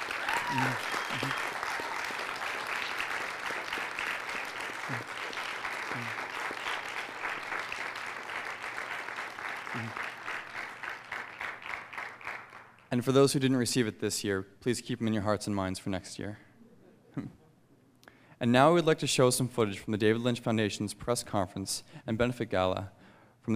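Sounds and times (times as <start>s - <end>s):
audience applause: 0.0s - 12.8s
speech: 0.5s - 1.5s, 13.0s - 16.5s, 17.2s - 17.4s, 18.4s - 23.5s.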